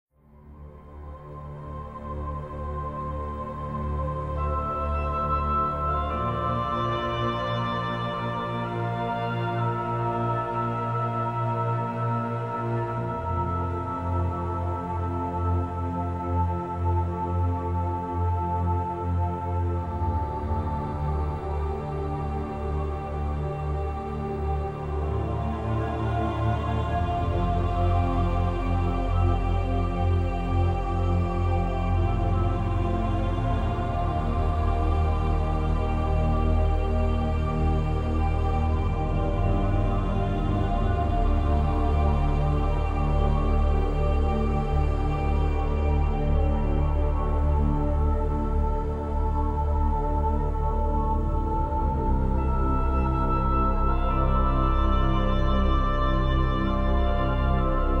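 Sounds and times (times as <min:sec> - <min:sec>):
ghost theme music: 0:00.3 - 0:57.9.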